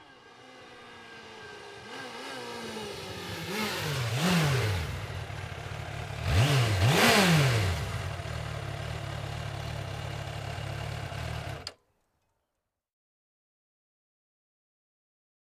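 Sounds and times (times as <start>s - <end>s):
Suzuki GSX 600 F motorcycle engine: 0.0s - 11.8s.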